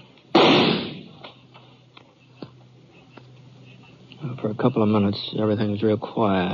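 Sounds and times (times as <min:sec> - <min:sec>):
gunshot: 0:00.3 - 0:01.2
speech: 0:04.4 - 0:06.5.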